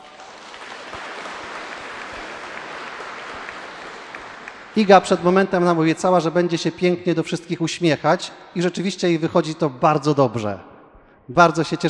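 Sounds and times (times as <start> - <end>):
crowd applause: 0.0 - 5.4
speech: 4.8 - 10.7, 11.3 - 11.8.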